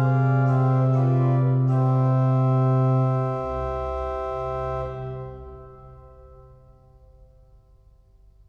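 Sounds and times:
organ partita: 0.0 - 6.4.

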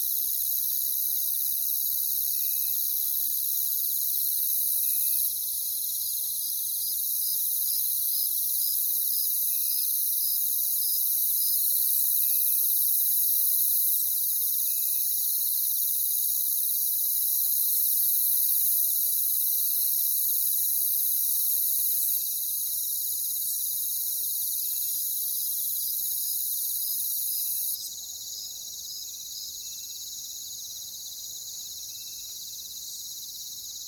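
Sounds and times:
high shimmering cricket chorus: 0.0 - 33.8.

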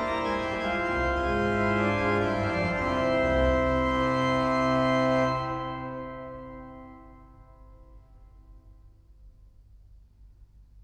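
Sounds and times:
great organ partita: 0.0 - 7.6.

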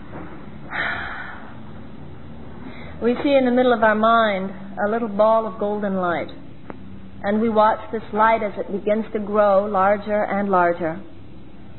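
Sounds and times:
seated group taking a very deep breath together: 0.7 - 1.6, 2.6 - 3.0
speech: 3.0 - 6.4, 7.2 - 11.1.

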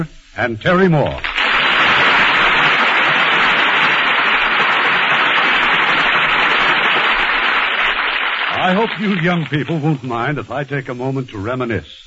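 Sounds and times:
speech: 0.0 - 1.3, 8.6 - 12.0
audience applause: 1.2 - 10.1.

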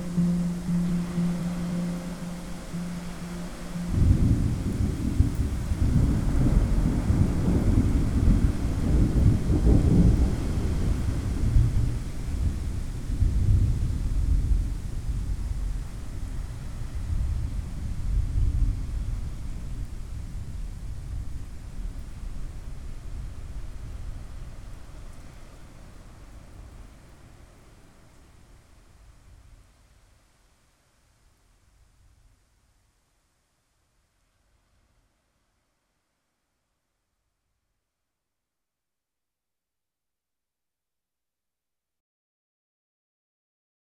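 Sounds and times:
ocean waves: 0.0 - 13.0
gentle thunderstorm: 0.0 - 30.2.

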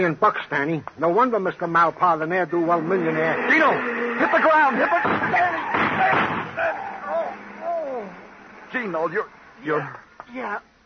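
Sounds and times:
speech: 0.0 - 6.2, 8.7 - 10.7
man shouting urgently: 2.8 - 8.2
gunshot in an old radio drama: 5.0 - 6.6.

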